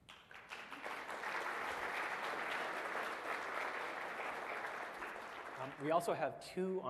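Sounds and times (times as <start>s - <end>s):
audience applause for award winner: 0.0s - 6.2s
speech: 5.6s - 6.8s.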